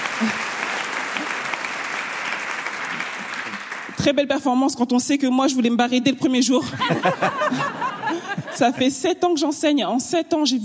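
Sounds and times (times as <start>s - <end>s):
audience applause: 0.0s - 4.0s
speech: 0.2s - 0.4s, 4.0s - 10.6s
laughter: 6.6s - 9.0s.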